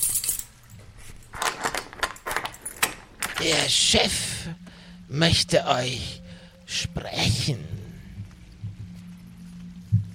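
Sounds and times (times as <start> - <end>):
keys jangling in a lock unlocking a door: 0.0 - 3.7
speech: 3.4 - 7.7.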